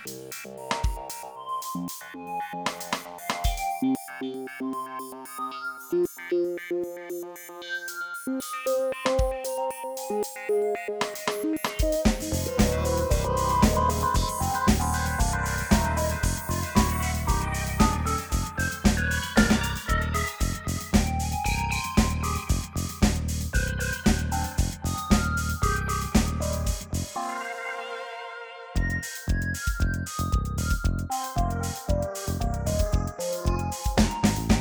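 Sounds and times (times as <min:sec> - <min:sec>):
electronic pop music on a Casio: 0:00.0 - 0:34.5.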